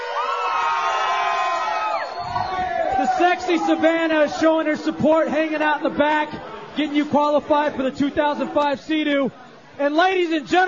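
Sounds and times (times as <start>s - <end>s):
crowd cheering and whooping: 0.0s - 4.7s
speech: 3.2s - 10.6s.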